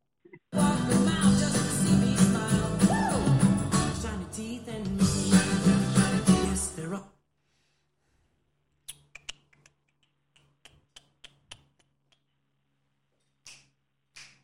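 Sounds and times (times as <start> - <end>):
cartoon theme music: 0.6 - 6.7.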